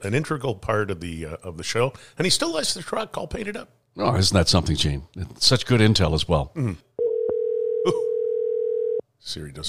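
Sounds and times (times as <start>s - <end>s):
speech: 0.0s - 6.9s, 7.8s - 8.1s, 9.2s - 9.6s
steady telephone dial tone: 7.0s - 9.0s.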